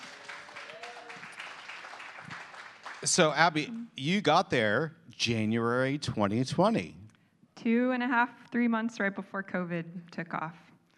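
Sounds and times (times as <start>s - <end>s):
faint audience clapping welcoming a church planter: 0.0s - 3.7s
speech: 3.0s - 7.0s, 7.6s - 10.6s.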